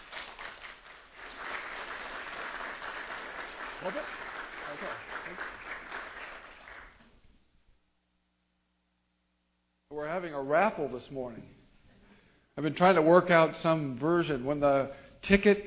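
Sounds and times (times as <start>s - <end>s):
audience applause welcoming a guest speaker: 0.0s - 7.1s
speech: 3.8s - 5.9s, 10.0s - 11.6s, 12.6s - 15.6s.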